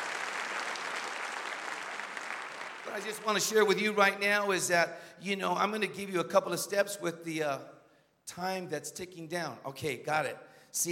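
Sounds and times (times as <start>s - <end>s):
audience applause and hand clapping: 0.0s - 3.7s
speech: 3.0s - 7.7s, 8.3s - 10.9s.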